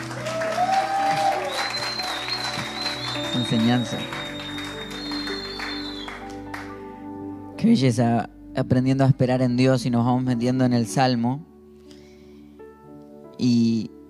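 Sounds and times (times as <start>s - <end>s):
audience applause: 0.0s - 6.8s
speech: 3.4s - 4.2s, 7.6s - 11.5s, 13.4s - 14.0s.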